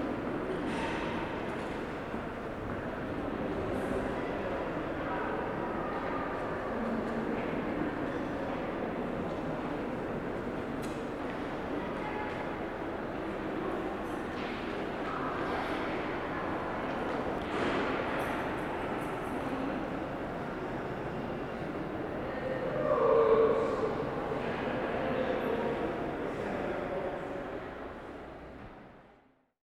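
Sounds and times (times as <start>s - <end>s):
museum ambience: 0.0s - 29.4s.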